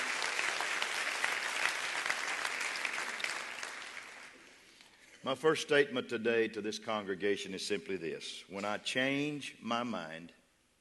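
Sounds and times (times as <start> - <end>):
audience clapping hands: 0.0 - 4.5
speech: 5.2 - 10.4.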